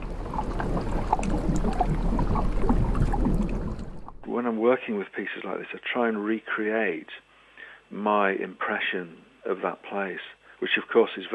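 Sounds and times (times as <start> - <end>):
seawater washing back and forth over hydrophones: 0.0 - 4.3
speech: 4.4 - 7.3, 7.9 - 11.3.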